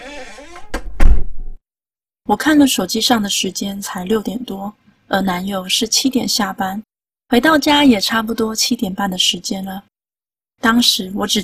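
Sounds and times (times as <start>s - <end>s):
bathroom door opening and closing: 0.0s - 1.6s
speech: 2.3s - 9.9s, 10.6s - 11.4s.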